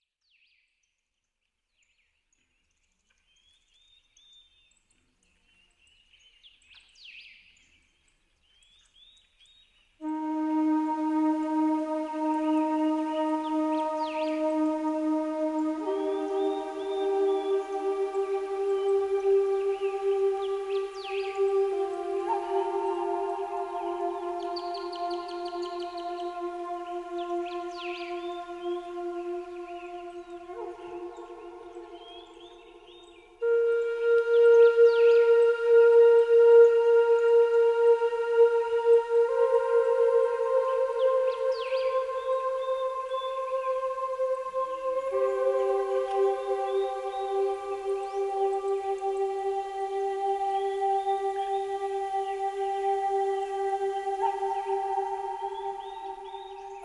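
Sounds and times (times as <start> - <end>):
birds: 10.0 - 56.8
flute: 10.0 - 56.8.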